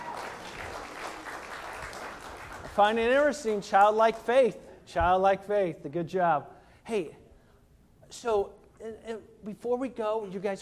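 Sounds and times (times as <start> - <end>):
crowd audience applause: 0.0 - 3.0
speech: 2.8 - 7.2, 8.1 - 10.6.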